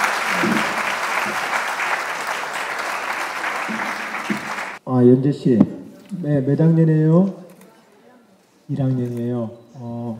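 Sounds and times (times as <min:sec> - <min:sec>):
audience applause: 0:00.0 - 0:04.8
speech: 0:04.9 - 0:07.4, 0:08.7 - 0:10.1.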